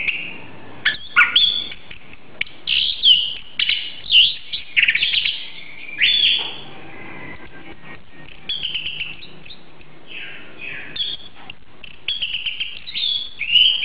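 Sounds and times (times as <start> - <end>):
Oriental magpie-robin song: 0.0 - 13.8.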